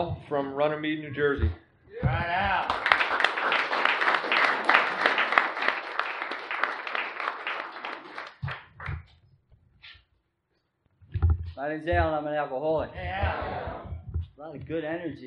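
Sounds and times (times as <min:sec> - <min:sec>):
speech: 0:00.0 - 0:03.3, 0:11.6 - 0:13.6, 0:14.4 - 0:15.2
audience applause: 0:02.1 - 0:08.9.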